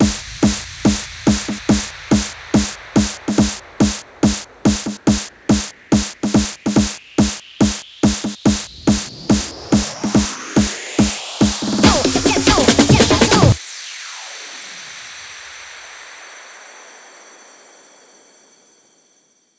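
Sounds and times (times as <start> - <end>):
hands up and trance fills: 0.0 - 13.6.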